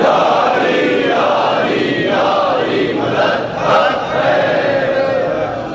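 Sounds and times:
large crowd answering a slogan call at a Shia gathering: 0.0s - 5.6s.

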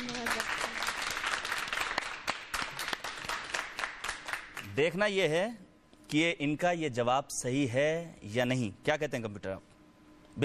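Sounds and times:
audience applause: 0.0s - 4.6s
speech: 4.8s - 9.7s.

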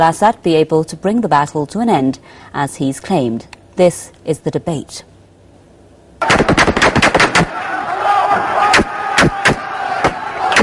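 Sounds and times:
speech: 0.0s - 5.1s, 6.2s - 6.6s
insurgents firing automatic guns into the air in jubilation in Raqqa: 6.2s - 7.5s
single gunshots: 6.2s - 7.6s, 8.7s - 10.6s
crowd shouting: 7.3s - 10.6s.

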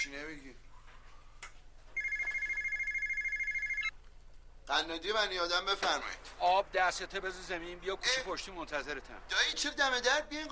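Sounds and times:
speech: 0.0s - 0.7s, 4.7s - 10.5s
telephone ringing with trilling electronic bell: 1.9s - 3.9s.

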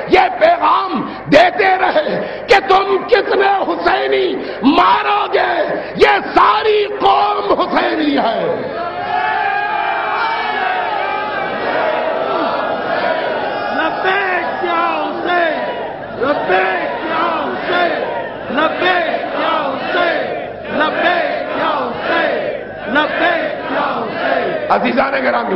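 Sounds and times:
speech: 0.2s - 7.3s, 24.7s - 25.5s
large crowd chanting a religious slogan: 7.5s - 25.5s.

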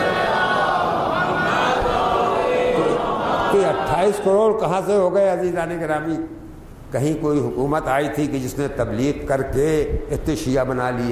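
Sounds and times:
many voices chanting the salawat during a Shia sermon: 0.0s - 4.2s
speech: 3.8s - 11.0s.

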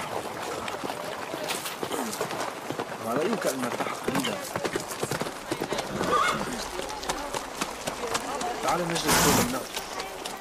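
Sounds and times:
hooves of a passing caravan clip-clopping: 0.0s - 10.4s
murmured voices: 0.0s - 10.4s
speech: 3.1s - 4.6s, 8.7s - 9.8s
horse whinny: 9.0s - 9.6s.

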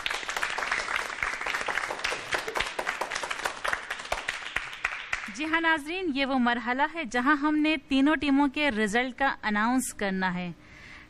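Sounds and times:
loud audience applause for the teams on a quiz show: 0.0s - 5.3s
speech: 5.4s - 10.6s.

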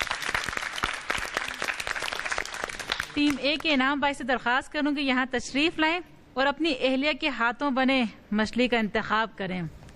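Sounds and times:
audience applause: 0.0s - 3.2s
speech: 3.2s - 9.8s.

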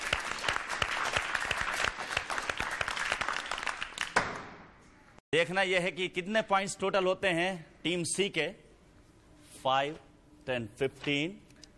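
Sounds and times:
loud crowd applause: 0.0s - 4.3s
speech: 5.4s - 8.6s, 9.6s - 11.4s.

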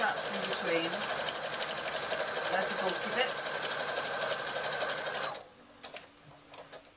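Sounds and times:
sewing machine stitching across the top of a bag: 0.0s - 5.4s
speech: 0.7s - 1.2s.

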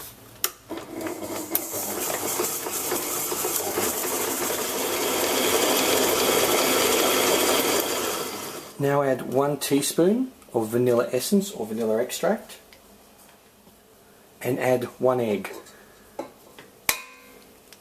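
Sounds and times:
electric mixer creaming butter and sugar: 0.7s - 8.8s
speech: 8.8s - 12.6s, 14.4s - 15.6s.

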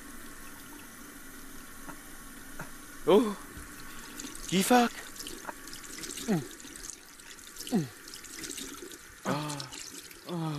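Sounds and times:
speech: 3.1s - 3.4s, 4.5s - 5.0s, 6.3s - 6.6s, 7.7s - 8.0s
tap water running into a sink while someone washes their face: 3.6s - 10.3s.

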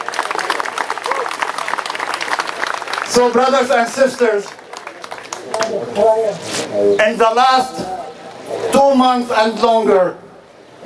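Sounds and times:
audience applause: 0.0s - 6.2s
speech: 3.1s - 4.6s, 5.7s - 8.0s, 8.7s - 10.2s.

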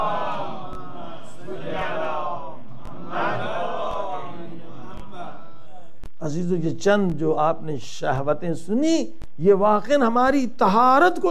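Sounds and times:
crowd at a religious sermon gathering reciting salawat in unison: 0.0s - 6.0s
speech: 6.3s - 11.2s.

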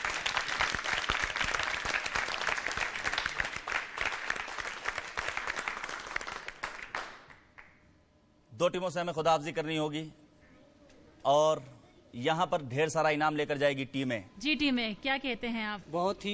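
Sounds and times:
loud audience applause: 0.0s - 7.7s
speech: 8.6s - 10.2s, 11.2s - 16.3s.

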